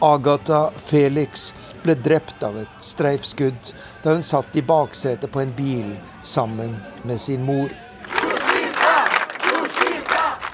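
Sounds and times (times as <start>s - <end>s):
speech: 0.0s - 7.8s
crowd chanting rhythmically at a funeral: 7.7s - 10.5s.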